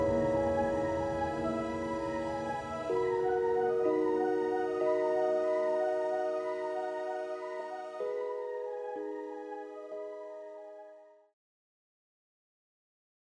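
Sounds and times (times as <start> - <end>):
cinematic soundtrack music: 0.0 - 11.1.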